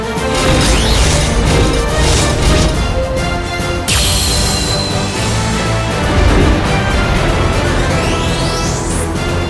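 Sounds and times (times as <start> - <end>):
pachinko slot machine reach sound effect: 0.1 - 9.4.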